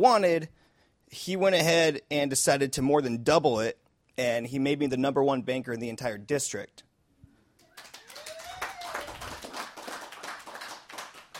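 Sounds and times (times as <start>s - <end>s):
speech: 0.0s - 6.9s
audience applause: 7.6s - 11.3s
whistle or cheer: 7.8s - 9.4s.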